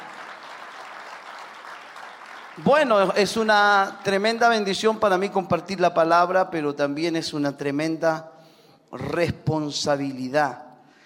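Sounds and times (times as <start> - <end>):
audience applause: 0.0 - 3.2
speech: 2.6 - 8.3, 8.9 - 10.6.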